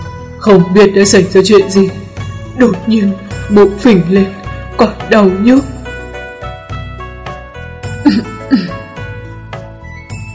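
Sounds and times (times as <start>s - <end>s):
speech: 0.4s - 2.0s, 2.6s - 5.8s
throat clearing: 8.0s - 8.8s
dry cough: 8.0s - 8.9s.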